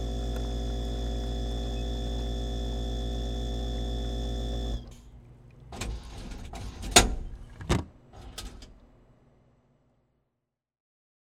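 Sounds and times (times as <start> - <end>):
coffee vending machine: 0.0 - 8.9.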